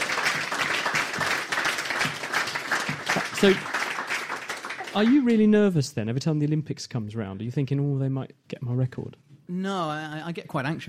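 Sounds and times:
applause: 0.0s - 5.5s
speech: 3.4s - 3.7s, 5.0s - 10.8s.

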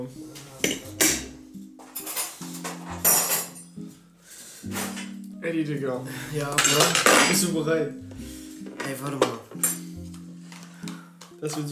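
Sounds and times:
speech: 0.0s - 1.0s, 5.4s - 8.0s, 8.9s - 9.7s, 11.4s - 11.7s
metal cutlery rattling in a kitchen drawer: 1.9s - 3.7s, 6.6s - 7.4s, 9.2s - 9.9s.

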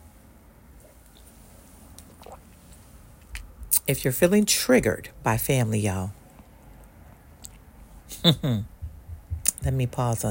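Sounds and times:
person sipping coffee: 0.8s - 3.5s
speech: 3.9s - 6.2s, 8.2s - 8.7s, 9.6s - 10.2s.

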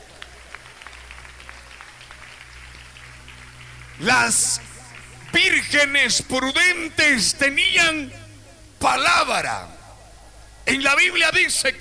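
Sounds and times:
audience clapping: 0.0s - 6.4s
low hum: 0.0s - 11.2s
speech: 4.0s - 8.2s, 8.8s - 9.7s, 10.7s - 11.8s.

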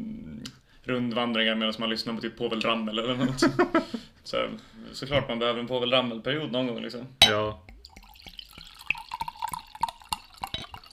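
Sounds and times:
speech: 0.8s - 7.6s
laughter: 3.0s - 4.1s
person taking a big swig of a drink: 7.7s - 10.9s.

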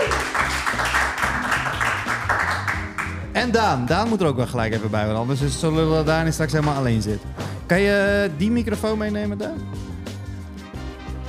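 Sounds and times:
audience applause: 0.0s - 3.2s
low rhythmic bass line: 0.0s - 11.2s
speech: 3.4s - 9.8s.

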